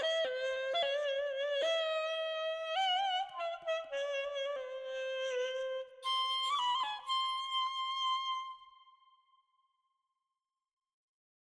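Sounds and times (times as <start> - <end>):
ney flute playing in Dastgah Chahargah: 0.0 - 9.1.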